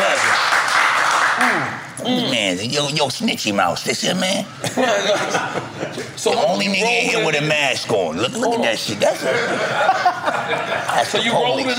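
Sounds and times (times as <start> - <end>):
group clapping: 0.0 - 1.9
speech: 1.4 - 11.7
laughter: 4.6 - 6.3, 9.0 - 11.7.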